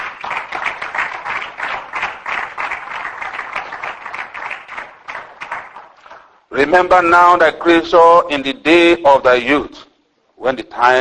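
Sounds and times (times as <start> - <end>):
audience clapping: 0.0 - 6.4
speech: 6.6 - 9.8, 10.4 - 10.9.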